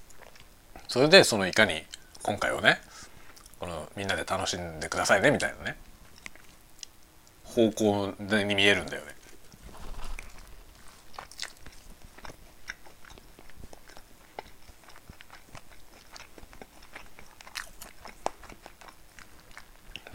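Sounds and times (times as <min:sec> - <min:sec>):
speech: 0:00.9 - 0:02.9, 0:03.6 - 0:05.9, 0:07.6 - 0:09.2
biting and chewing bread: 0:09.3 - 0:20.1.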